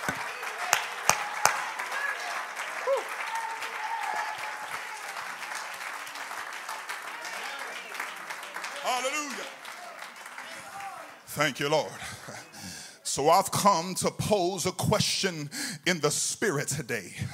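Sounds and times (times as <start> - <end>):
audience clapping hands: 0.0 - 12.5
speech: 11.4 - 12.2, 13.2 - 17.3.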